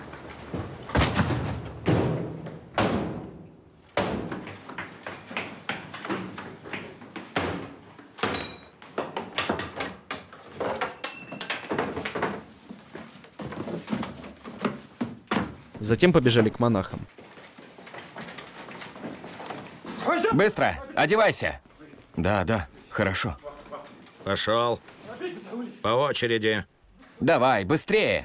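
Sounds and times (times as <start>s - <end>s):
intruders forcing open temple doors at night: 0.0s - 20.3s
brief metallic rings: 8.4s - 8.8s, 11.0s - 12.0s
speech: 15.9s - 17.2s, 20.3s - 21.6s, 22.2s - 23.4s, 24.2s - 25.0s, 25.8s - 28.2s.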